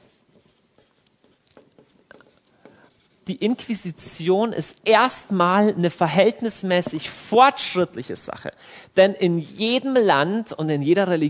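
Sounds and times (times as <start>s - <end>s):
handwriting on a board or paper: 0.0s - 3.3s
speech: 3.3s - 11.2s.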